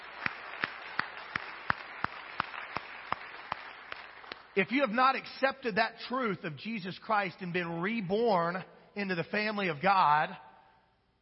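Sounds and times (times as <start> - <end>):
audience clapping in praise: 0.0 - 4.9
speech: 4.6 - 10.4.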